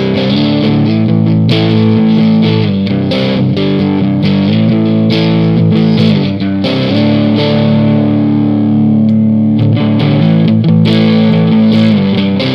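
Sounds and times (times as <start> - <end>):
distorted crunch electric guitar: 0.0 - 12.5.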